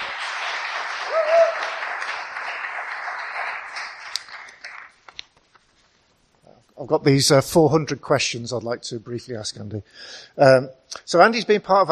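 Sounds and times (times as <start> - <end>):
audience applause welcoming a speaker: 0.0 - 5.0
speech: 6.8 - 11.8.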